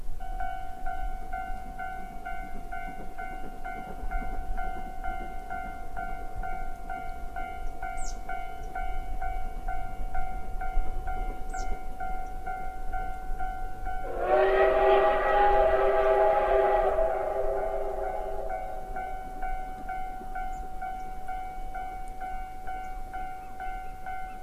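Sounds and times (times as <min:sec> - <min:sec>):
winter tourist train passing over a hill: 0:00.0 - 0:24.4
sustained whistle-like train blast: 0:13.9 - 0:19.5.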